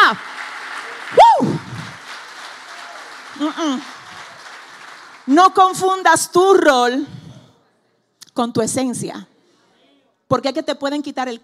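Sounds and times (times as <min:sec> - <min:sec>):
crowd clapping: 0:00.0 - 0:06.0
rising whoop: 0:01.2 - 0:01.9
speech: 0:03.4 - 0:04.0, 0:05.3 - 0:07.2, 0:08.4 - 0:09.3, 0:10.3 - 0:11.4.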